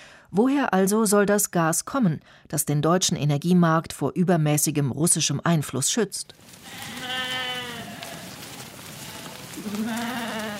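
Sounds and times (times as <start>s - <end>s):
speech: 0.3s - 7.2s
rustling: 6.3s - 10.5s
huge flock of sheep bleating following a shepherd across a forest clearing: 6.4s - 10.5s.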